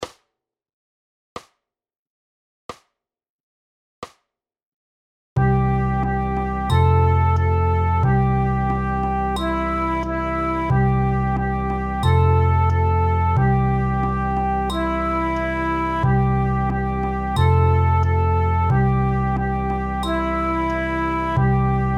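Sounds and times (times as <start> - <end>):
playalong music: 5.4 - 21.9.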